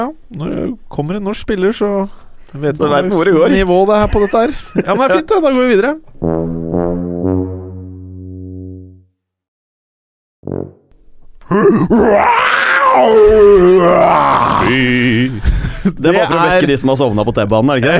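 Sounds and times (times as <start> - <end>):
speech: 0.0 - 6.5, 11.5 - 17.9
laughter: 4.0 - 5.3
person imitating a lion's roar: 11.4 - 15.4.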